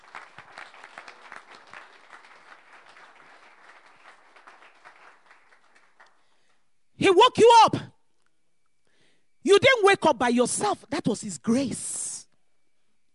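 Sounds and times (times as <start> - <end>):
audience applause: 0.0 - 6.2
speech: 7.0 - 7.9, 9.8 - 12.0.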